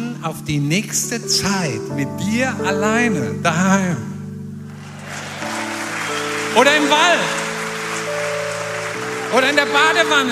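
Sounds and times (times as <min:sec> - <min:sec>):
speech: 0:00.2 - 0:04.1, 0:06.6 - 0:07.4, 0:09.3 - 0:10.2
audience clapping: 0:04.7 - 0:10.2.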